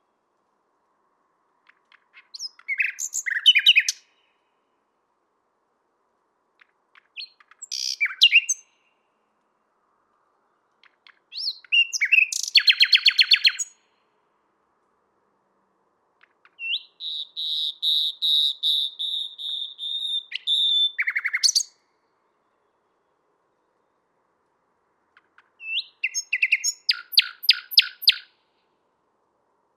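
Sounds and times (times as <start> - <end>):
common nightingale singing: 1.6 - 4.5, 6.6 - 9.2, 10.8 - 14.0, 16.2 - 22.8, 25.1 - 28.7.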